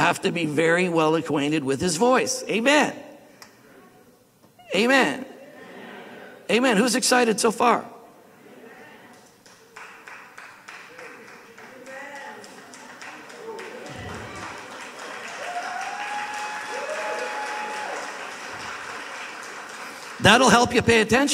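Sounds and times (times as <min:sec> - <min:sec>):
speech: 0:00.1 - 0:03.1, 0:04.7 - 0:05.3, 0:06.5 - 0:08.0, 0:20.2 - 0:21.3
audience clapping: 0:09.1 - 0:21.3.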